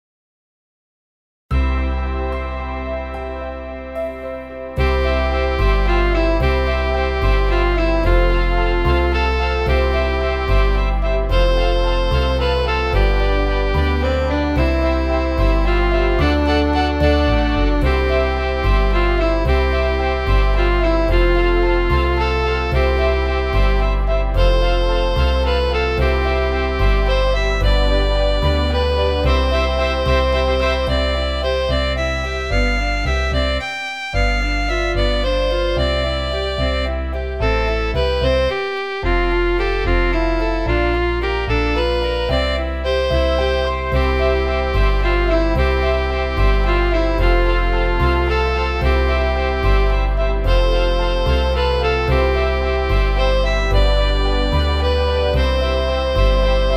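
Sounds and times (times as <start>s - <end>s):
organ: 1.5s - 56.7s.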